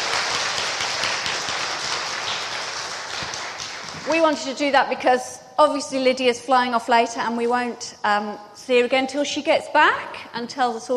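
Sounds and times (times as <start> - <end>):
audience applause: 0.0 - 4.2
speech: 4.1 - 10.9.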